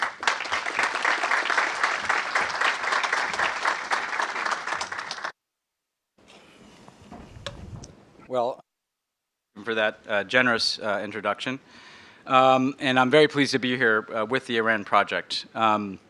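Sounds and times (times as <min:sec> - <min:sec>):
audience applause welcoming a keynote speaker at a talk: 0:00.0 - 0:05.4
speech: 0:08.3 - 0:08.6, 0:09.7 - 0:16.0.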